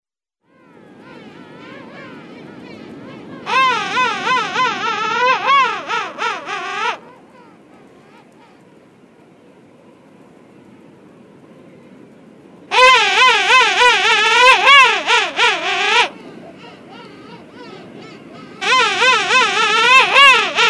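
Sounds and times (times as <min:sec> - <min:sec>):
king penguin trumpeting call: 0:03.4 - 0:07.1, 0:12.7 - 0:20.6.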